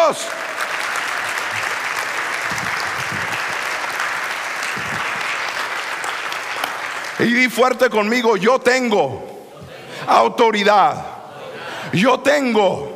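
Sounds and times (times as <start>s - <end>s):
audience applause: 0.0s - 7.5s
speech: 0.1s - 0.5s, 7.2s - 9.3s, 10.1s - 11.1s, 11.9s - 12.9s.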